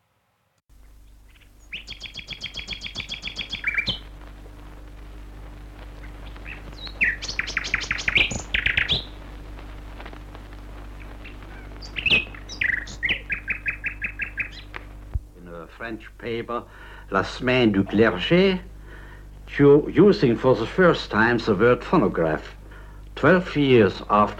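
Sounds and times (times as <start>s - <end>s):
low steady hum: 0.0s - 24.3s
white-rumped shama singing: 0.8s - 4.1s, 6.0s - 9.2s, 11.0s - 14.8s
speech: 15.9s - 18.7s, 19.6s - 22.6s, 23.2s - 24.3s.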